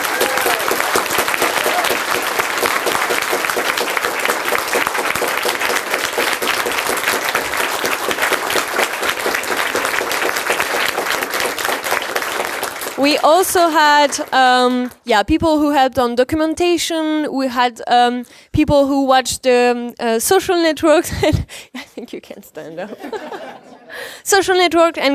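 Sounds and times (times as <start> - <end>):
audience applause: 0.0 - 13.2
speech: 13.2 - 25.1
laughter: 22.8 - 24.0.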